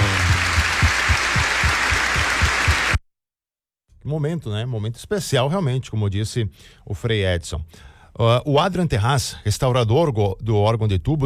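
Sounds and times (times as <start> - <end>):
audience applause: 0.0 - 3.0
speech: 4.1 - 11.2.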